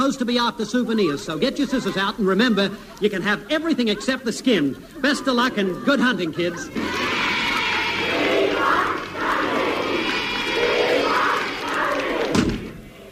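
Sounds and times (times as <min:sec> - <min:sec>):
laughter: 0:00.0 - 0:12.3
speech: 0:00.1 - 0:07.1
large crowd of fans roaring and chanting: 0:04.9 - 0:13.1.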